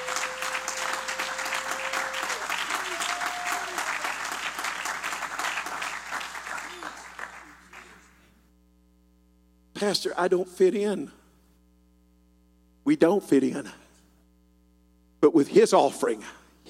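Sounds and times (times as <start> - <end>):
audience clapping hands: 0.0 - 8.4
speech: 9.8 - 11.2, 12.9 - 13.8, 15.2 - 16.4.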